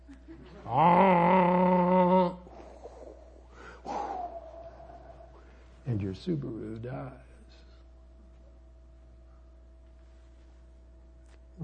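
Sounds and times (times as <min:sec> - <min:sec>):
speech: 0:00.7 - 0:01.0, 0:06.2 - 0:07.3
person imitating a foghorn: 0:00.7 - 0:02.4
breathy vocal sounds: 0:00.7 - 0:05.5.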